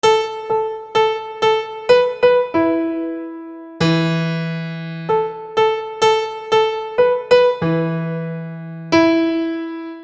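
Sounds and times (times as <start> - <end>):
keyboard: 0.0 - 10.0.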